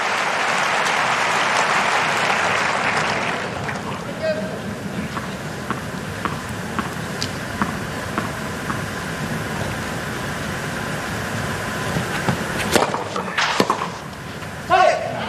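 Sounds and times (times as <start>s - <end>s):
tennis crowd applauding and cheering: 0.0s - 4.2s
tennis crowd murmuring: 0.0s - 15.2s.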